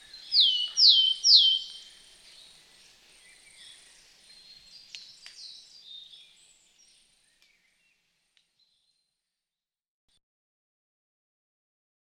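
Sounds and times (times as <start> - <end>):
great tit calling: 0.0 - 1.9.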